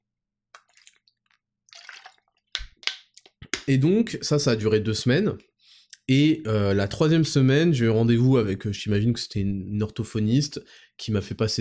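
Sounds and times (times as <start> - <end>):
person sipping water: 0.6 - 2.4
speech: 3.7 - 5.5, 6.1 - 11.5.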